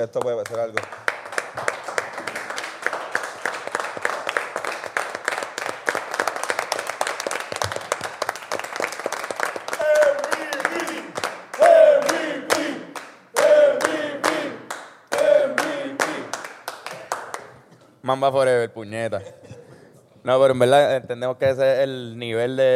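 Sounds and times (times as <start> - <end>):
speech: 0.0 - 1.0, 1.6 - 1.8, 18.1 - 19.4, 20.2 - 22.7
big audience applause: 0.7 - 17.5.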